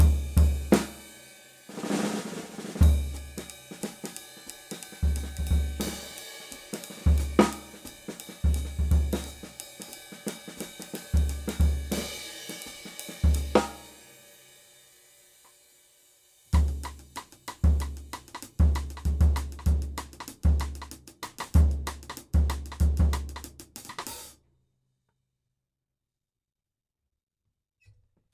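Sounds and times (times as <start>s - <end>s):
5x14 Supra snare drum: 0.0s - 14.1s, 16.6s - 24.4s.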